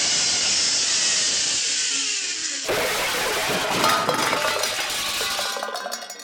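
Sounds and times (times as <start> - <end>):
steady rushing whir: 0.0 - 5.0
tin can bowling pins knocked down: 2.7 - 6.2.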